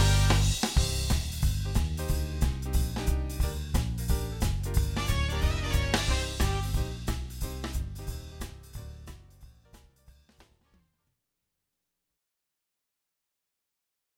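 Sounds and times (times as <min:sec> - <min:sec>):
swing music: 0:00.0 - 0:10.6.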